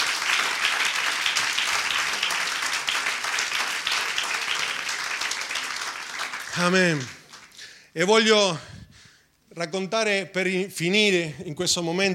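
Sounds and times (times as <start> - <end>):
audience applauding: 0.0 - 7.7
speech: 6.6 - 7.2, 8.0 - 8.7, 9.6 - 12.1.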